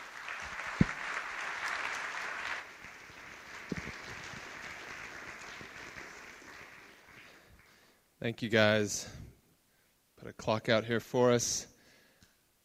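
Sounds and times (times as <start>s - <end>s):
audience applause: 0.0s - 7.9s
speech: 8.2s - 9.2s, 10.4s - 11.7s.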